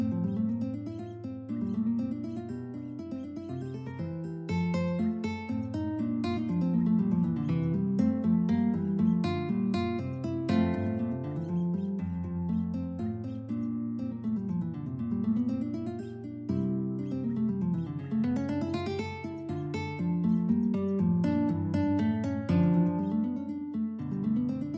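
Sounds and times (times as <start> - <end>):
guitar piece in F: 0.0 - 24.7.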